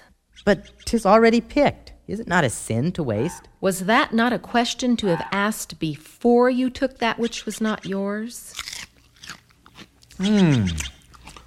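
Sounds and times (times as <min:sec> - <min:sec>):
speech: 0:00.4 - 0:08.7, 0:10.2 - 0:11.0
person chewing freshly picked fruit: 0:08.5 - 0:11.4
loud voiced murmur: 0:10.2 - 0:10.9.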